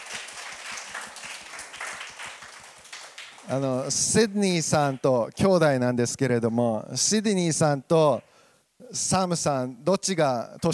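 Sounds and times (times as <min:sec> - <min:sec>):
audience clapping: 0:00.0 - 0:04.1
speech: 0:03.5 - 0:10.7.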